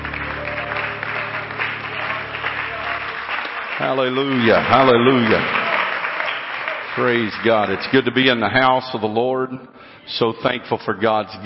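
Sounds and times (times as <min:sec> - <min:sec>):
audience hand clapping in praise: 0:00.0 - 0:08.5
speech: 0:03.8 - 0:05.6, 0:07.0 - 0:11.4.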